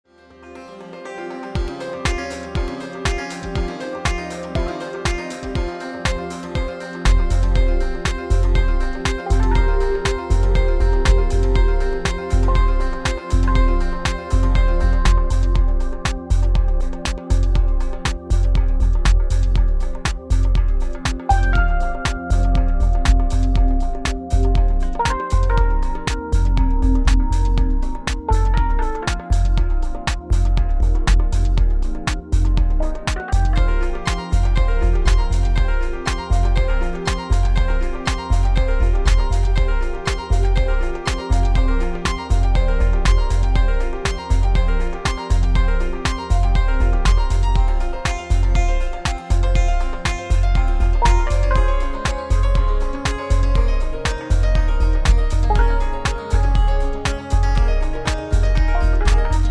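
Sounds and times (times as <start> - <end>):
contemporary urban pop funk music: 0.6 - 59.4.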